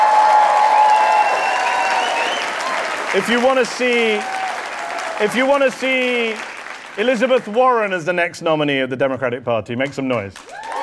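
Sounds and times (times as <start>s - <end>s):
live audience cheering and applauding for Bernie Sanders: 0.0s - 8.0s, 10.4s - 10.8s
speech: 3.1s - 4.4s, 5.2s - 10.6s.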